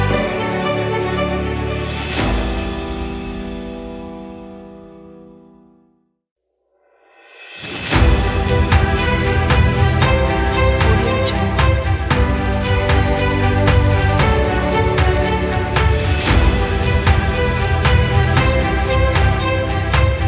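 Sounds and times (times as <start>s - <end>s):
epic cinematic motivational music: 0.0s - 5.2s, 7.4s - 20.2s.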